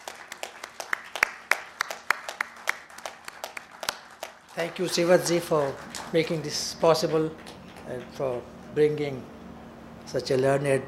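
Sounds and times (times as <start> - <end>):
audience applause: 0.0 - 8.1
speech: 4.6 - 9.4, 10.1 - 10.8.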